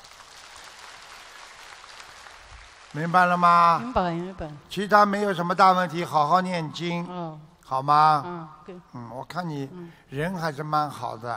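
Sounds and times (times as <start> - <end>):
crowd applause: 0.0 - 3.9
speech: 2.9 - 11.3.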